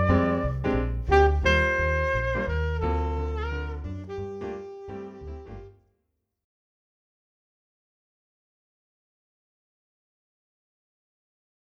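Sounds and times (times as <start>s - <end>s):
jazz keyboard: 0.0s - 5.8s
jazz saxophone: 0.0s - 5.8s.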